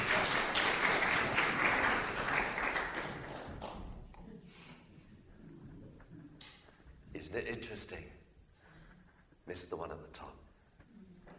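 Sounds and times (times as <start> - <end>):
audience applause: 0.0 - 4.0
speech: 7.3 - 8.2, 9.5 - 10.5.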